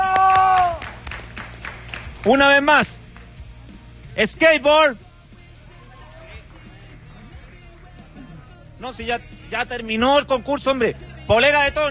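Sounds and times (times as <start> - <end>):
sustained cheering shout: 0.0 - 1.0
audience clapping: 0.0 - 3.5
speech: 2.2 - 3.0, 4.2 - 5.0, 8.8 - 11.8.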